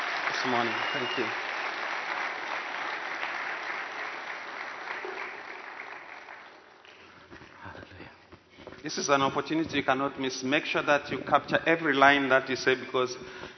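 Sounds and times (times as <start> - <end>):
church applause welcoming a preacher to the front for a morning sermon: 0.0 - 7.1
speech: 0.4 - 1.5, 8.8 - 13.5.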